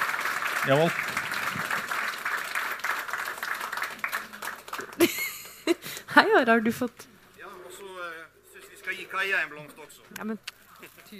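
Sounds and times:
audience applause: 0.0 - 5.8
speech: 0.6 - 1.6, 6.2 - 7.1, 9.1 - 11.1
laughter: 4.8 - 5.9.

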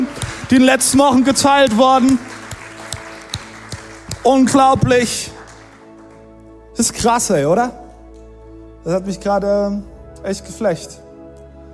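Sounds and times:
audience applause: 0.0 - 6.2
speech: 0.5 - 2.3, 4.2 - 5.4, 6.8 - 7.8, 8.8 - 11.0.

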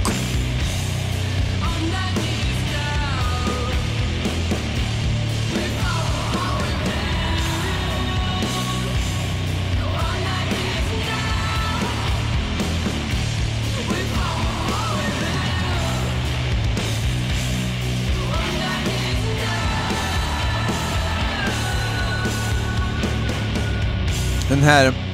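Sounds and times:
dense loud metal track: 0.0 - 25.1
heavy distorted guitars: 0.0 - 25.1
speech: 24.6 - 25.0.

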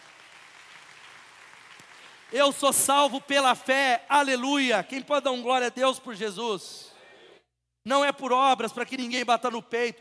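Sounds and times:
audience applauding: 0.0 - 2.4
speech: 2.3 - 6.9, 7.8 - 9.9.

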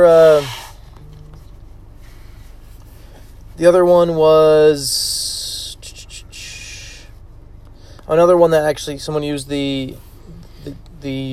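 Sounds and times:
speech: 0.0 - 0.6, 3.6 - 5.2, 8.1 - 11.3
person blowing nose: 0.2 - 0.8.

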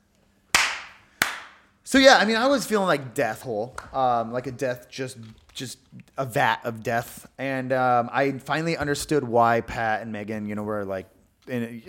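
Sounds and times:
hands clapping: 0.5 - 1.6, 3.8 - 4.0
speech: 1.9 - 11.8.

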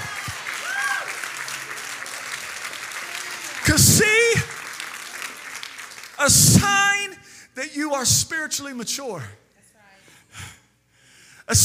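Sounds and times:
audience clapping: 0.0 - 7.2
speech: 3.7 - 4.5, 6.2 - 9.4, 11.5 - 11.6
person raising voice: 6.2 - 7.2.

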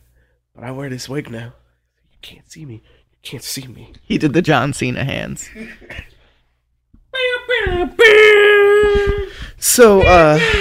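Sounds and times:
speech: 0.6 - 1.6, 2.2 - 6.1, 7.6 - 10.6
person screaming: 7.7 - 10.6.

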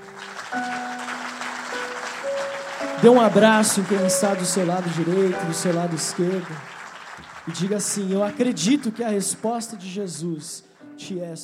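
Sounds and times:
audience applause: 0.0 - 9.0
speech: 0.5 - 0.8, 3.0 - 6.8, 7.4 - 11.4.

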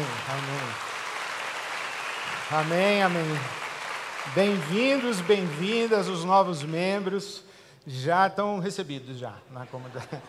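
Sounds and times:
audience applauding: 0.0 - 7.0
speech: 2.5 - 3.6, 4.2 - 10.2
laughter: 9.6 - 10.2.

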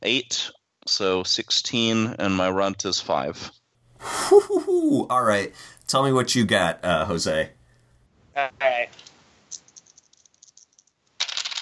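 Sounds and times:
speech: 0.0 - 7.6, 8.4 - 9.1
laughter: 4.0 - 5.3
dice rattling: 9.5 - 11.5.

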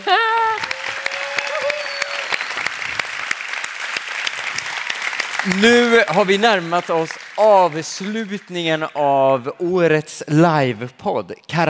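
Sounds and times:
person whooping: 0.0 - 2.4
audience applause: 0.0 - 9.1
speech: 5.4 - 11.6.

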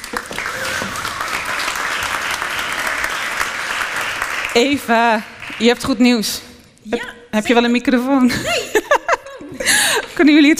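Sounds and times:
audience applause: 0.0 - 5.8
speech: 0.1 - 0.6, 4.5 - 8.8, 10.2 - 10.5
laughter: 8.3 - 10.2.

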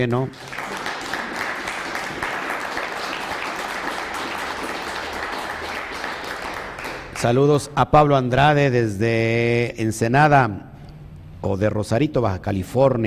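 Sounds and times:
speech: 0.0 - 0.6, 7.2 - 10.7, 11.4 - 13.0
applause: 0.2 - 7.4.

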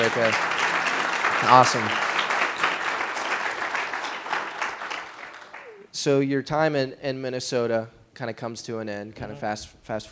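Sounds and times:
speech: 0.0 - 0.6, 1.4 - 2.1, 6.0 - 10.0
audience applause: 0.0 - 5.9.

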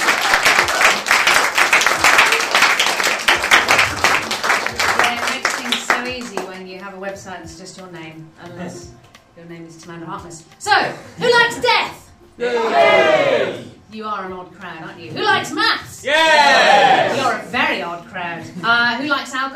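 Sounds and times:
crowd applauding to welcome a speaker: 0.0 - 6.6
speech: 7.2 - 19.5.

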